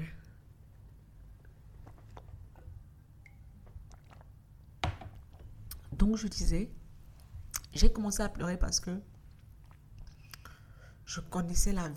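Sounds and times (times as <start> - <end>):
person sipping water: 1.7 - 4.7, 9.1 - 10.8
speech: 5.9 - 6.8, 7.8 - 9.1, 11.1 - 11.9.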